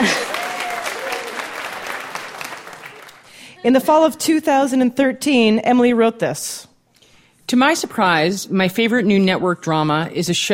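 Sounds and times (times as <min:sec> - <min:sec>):
clapping: 0:00.0 - 0:03.3
speech: 0:03.6 - 0:06.7, 0:07.5 - 0:10.5.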